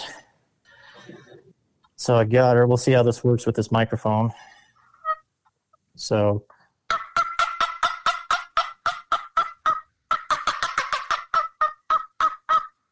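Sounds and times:
speech: 1.1s - 4.5s, 6.0s - 6.5s
wooden turkey box call making sharp raspy cuts: 6.9s - 12.7s.

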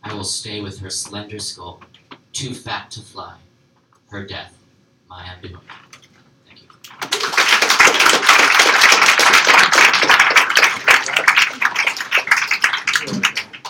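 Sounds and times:
speech: 0.2s - 3.5s, 4.1s - 6.0s
audience applause: 6.9s - 13.6s.

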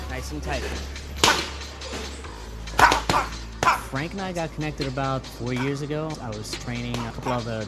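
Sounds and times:
speech: 0.2s - 1.4s, 3.1s - 7.6s
boxing jab hitting training pads: 1.2s - 1.6s, 2.8s - 4.0s.

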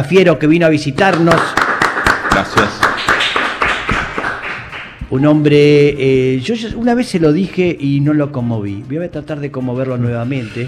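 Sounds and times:
speech: 0.0s - 1.6s, 2.4s - 2.8s, 5.1s - 10.6s
studio applause: 0.9s - 5.1s.

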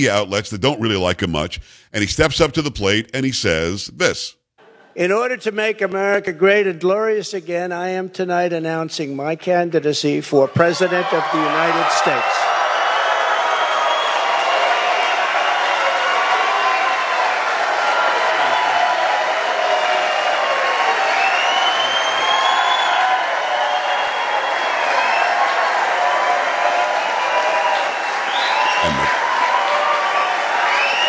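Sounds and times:
speech: 0.0s - 4.4s, 5.0s - 12.6s
rally crowd cheering wildly: 10.5s - 31.0s.

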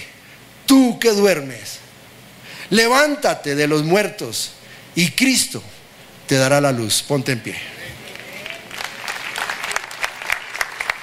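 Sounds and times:
speech: 0.7s - 1.8s, 2.7s - 7.8s
audience applause: 8.0s - 11.0s.

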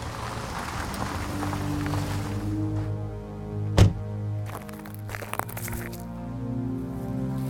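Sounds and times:
tire blowing out: 0.0s - 4.1s
steady low engine drone: 0.0s - 7.4s.

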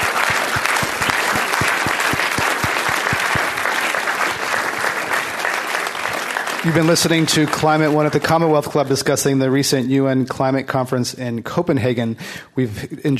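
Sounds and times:
audience applause: 0.0s - 8.6s
speech: 6.6s - 13.1s.

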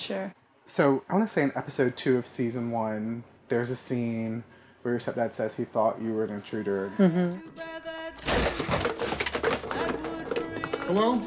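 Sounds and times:
speech: 0.1s - 8.8s, 10.9s - 11.2s
wooden shelf breaking: 8.2s - 11.1s.

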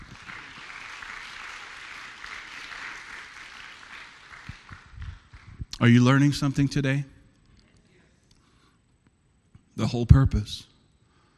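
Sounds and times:
audience applause: 0.0s - 5.6s
speech: 5.8s - 7.2s, 9.9s - 10.7s.

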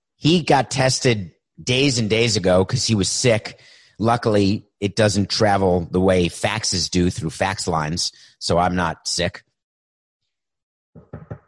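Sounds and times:
speech: 0.2s - 9.5s
knocking on a bathroom wall: 11.0s - 11.4s.

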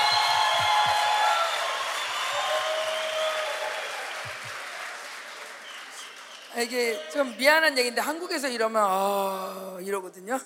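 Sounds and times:
audience applause: 0.0s - 7.6s
speech: 6.6s - 10.4s.

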